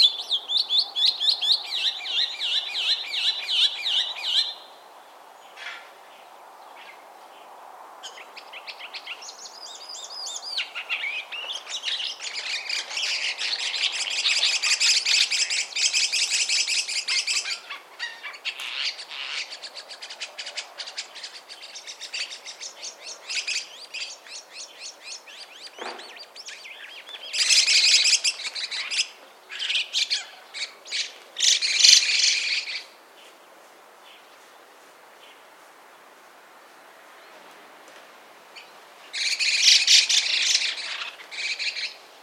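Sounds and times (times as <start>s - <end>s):
Sturnus philippensis calls: 0.0s - 4.6s, 8.0s - 33.0s, 38.6s - 42.2s.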